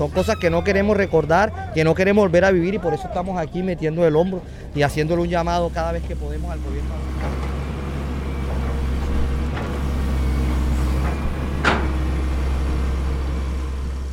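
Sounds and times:
speech: 0.0 - 7.5
heavy construction machinery droning: 0.0 - 14.1.

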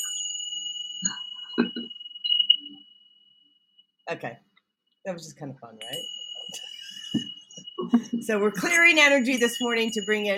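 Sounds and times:
small chimes ringing: 0.0 - 3.1, 5.8 - 10.3
speech: 1.0 - 2.0, 4.1 - 10.3.

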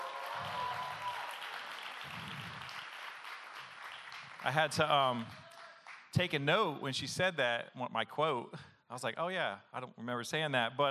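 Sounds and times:
round of applause: 0.0 - 6.3
speech: 4.4 - 5.4, 6.2 - 10.8.

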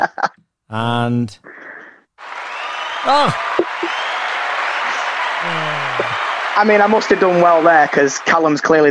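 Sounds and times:
speech: 0.7 - 1.4, 3.0 - 3.7, 6.6 - 8.8
round-of-applause sound effect: 2.2 - 8.8.

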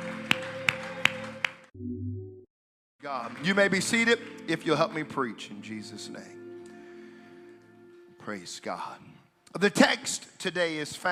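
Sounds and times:
audience clapping in unison: 0.0 - 1.7, 3.0 - 5.4
sustained music: 0.0 - 2.4, 3.0 - 9.1
speech: 3.0 - 6.4, 8.2 - 11.1.

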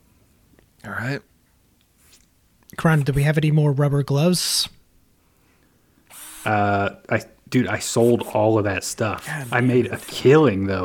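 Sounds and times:
speech: 0.8 - 1.3, 2.8 - 4.8, 6.4 - 10.8
power drill loosening screws on a wall: 6.1 - 6.6, 9.2 - 10.5.

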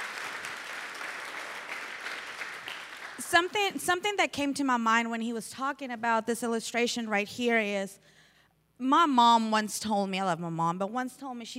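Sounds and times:
audience applause: 0.0 - 3.3
speech: 3.3 - 8.2, 8.8 - 11.5.

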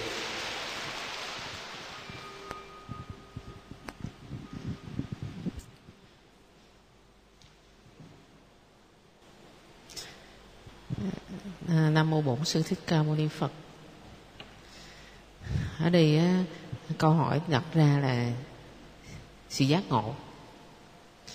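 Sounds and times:
audience applause: 0.0 - 2.4
speech: 12.0 - 13.7, 15.8 - 18.5, 19.5 - 20.3.

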